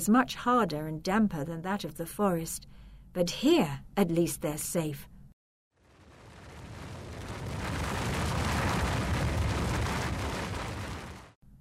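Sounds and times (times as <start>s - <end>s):
speech: 0.0s - 5.1s
rumbling echoing in a cave: 5.8s - 11.4s.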